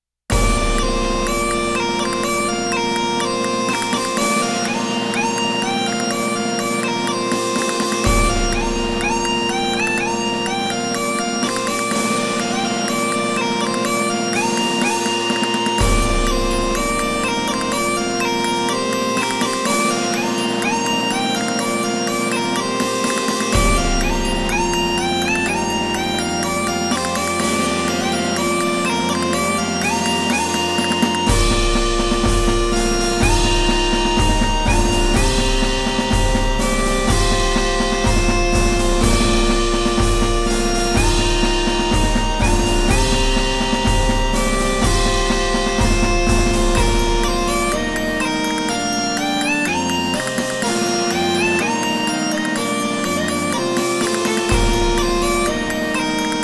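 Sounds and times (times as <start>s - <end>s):
bagpipe band: 0.3s - 56.4s.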